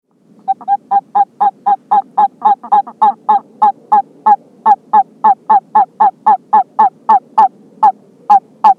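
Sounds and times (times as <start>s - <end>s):
California toad halophilus calling in brief mid-pitched chirps: 0.5s - 7.5s.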